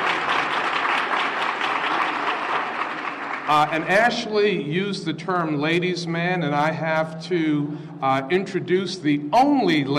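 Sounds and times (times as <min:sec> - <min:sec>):
applause: 0:00.0 - 0:04.4
speech: 0:03.5 - 0:09.9.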